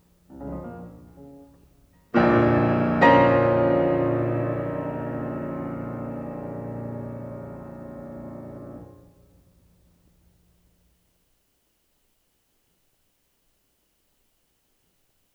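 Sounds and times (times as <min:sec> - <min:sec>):
piano sonata: 0:00.0 - 0:09.7.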